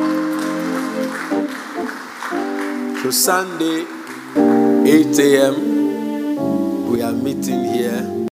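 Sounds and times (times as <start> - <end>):
audience clapping: 0.0 - 5.6
speech: 3.0 - 4.0, 4.8 - 5.7, 6.9 - 8.2.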